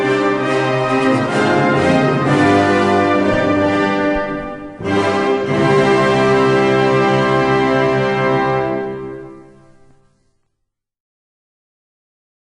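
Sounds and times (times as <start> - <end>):
traditional cavalry march music: 0.0 - 9.8.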